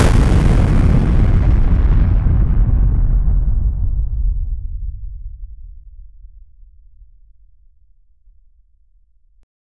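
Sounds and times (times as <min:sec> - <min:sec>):
sudden blindingly loud apocalyptic noise: 0:00.0 - 0:05.6.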